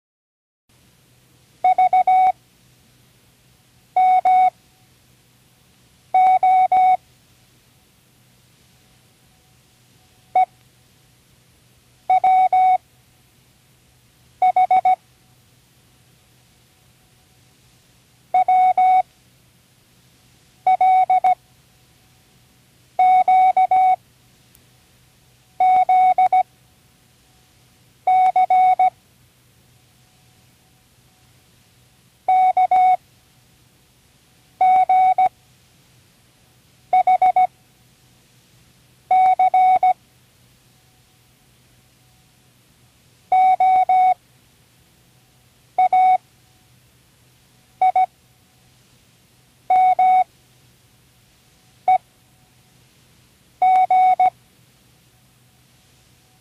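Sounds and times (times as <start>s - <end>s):
morse code of random letters: 1.7s - 2.3s, 4.0s - 4.5s, 6.2s - 7.0s, 12.1s - 12.8s, 14.4s - 15.0s, 18.4s - 19.0s, 20.7s - 21.4s, 23.0s - 24.0s, 25.6s - 26.4s, 28.1s - 28.9s, 32.3s - 33.0s, 34.6s - 35.3s, 37.0s - 37.5s, 39.1s - 40.0s, 43.3s - 44.2s, 45.8s - 46.2s, 49.7s - 50.2s, 53.6s - 54.3s.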